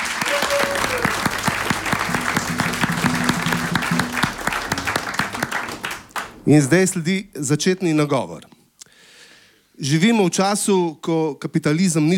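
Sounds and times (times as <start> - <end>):
audience applause: 0.0 - 6.5
speech: 6.5 - 8.5, 9.8 - 12.1.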